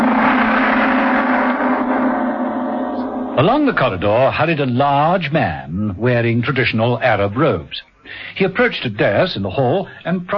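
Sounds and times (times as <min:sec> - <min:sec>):
gong crash: 0:00.0 - 0:05.0
speech: 0:03.4 - 0:10.3.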